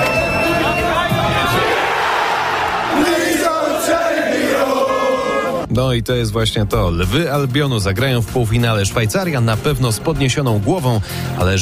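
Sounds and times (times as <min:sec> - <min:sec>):
football fans cheering after penalty shootout win: 0:00.0 - 0:05.7
speech: 0:05.8 - 0:11.6.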